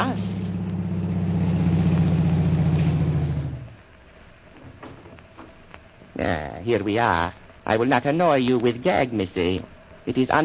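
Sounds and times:
car engine humming: 0.0 - 3.8
speech: 6.2 - 10.4.

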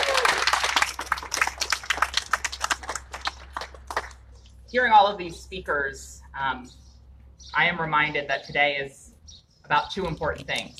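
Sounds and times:
audience applause: 0.0 - 4.1
speech: 4.7 - 6.8, 7.6 - 9.0, 9.7 - 10.7.

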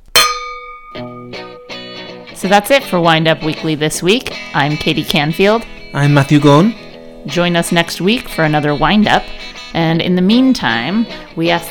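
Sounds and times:
wine glasses clinking in a toast: 0.1 - 1.6
speech: 2.4 - 11.6.

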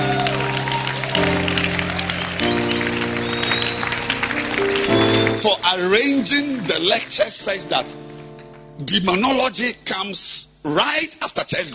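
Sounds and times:
audience clapping hands: 0.0 - 8.8
sustained organ-like chords: 0.0 - 11.7
speech: 5.5 - 8.1, 8.8 - 11.7.

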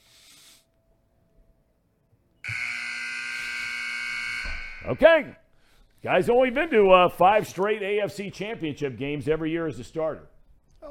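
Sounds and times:
brief hiss: 0.0 - 0.7
loud sustained electronic buzzer: 2.4 - 5.1
speech: 4.8 - 5.4, 6.0 - 10.8.

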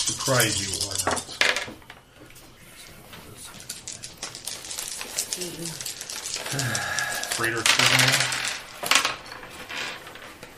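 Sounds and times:
six-sided dice rattling on hard surface: 0.0 - 1.8, 3.4 - 10.5
speech: 0.1 - 1.2, 5.4 - 5.8.

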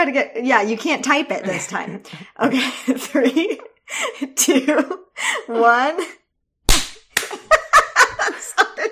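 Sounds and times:
speech: 0.0 - 6.2
two people clapping hands together: 7.2 - 7.5
laughter: 7.3 - 8.8.

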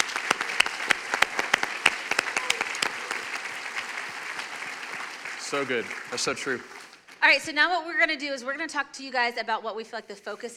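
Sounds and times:
audience applause: 0.0 - 7.1
speech: 5.5 - 10.5.

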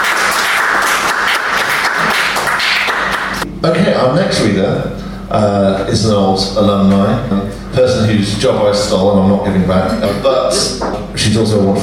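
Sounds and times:
audience applause: 0.0 - 3.4
speech: 3.6 - 11.8.

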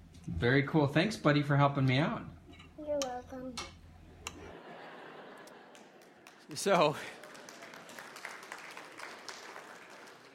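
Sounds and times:
speech: 0.4 - 2.4, 3.3 - 3.7, 6.5 - 7.2
crowd applauding: 4.6 - 10.3.

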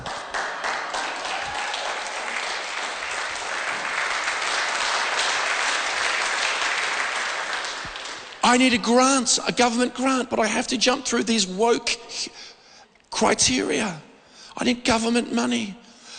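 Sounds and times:
audience golf clap: 0.0 - 8.5
speech: 8.5 - 12.5, 13.2 - 15.8.

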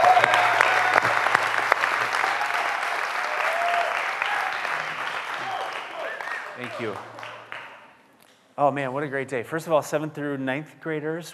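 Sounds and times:
church audience clapping: 0.0 - 8.1
speech: 6.8 - 7.1, 8.6 - 11.3.

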